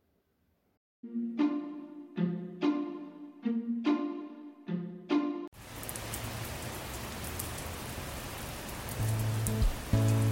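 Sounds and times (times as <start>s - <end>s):
bright repeated musical notes: 1.0s - 5.5s
steady dense rain falling: 5.6s - 10.3s.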